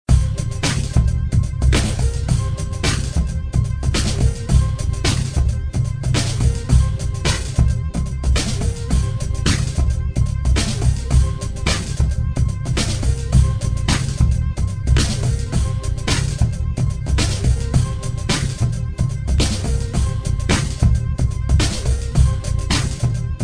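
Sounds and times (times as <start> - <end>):
groove music: 0.1 - 23.4.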